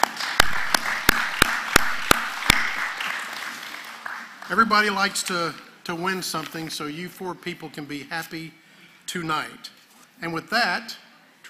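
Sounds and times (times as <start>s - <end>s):
audience applause: 0.0s - 5.0s
speech: 4.5s - 11.4s.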